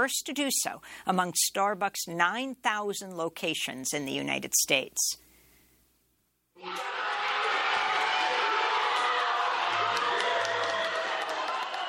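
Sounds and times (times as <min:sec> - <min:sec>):
speech: 0:00.0 - 0:05.3, 0:06.6 - 0:07.0
workers cheering at the Elmwood Starbucks store as union vote results are announced: 0:06.6 - 0:11.8.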